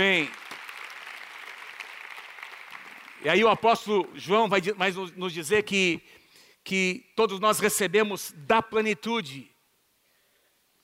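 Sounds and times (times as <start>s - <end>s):
speech: 0.0s - 0.4s, 3.2s - 9.5s
audience applauding: 0.0s - 4.1s.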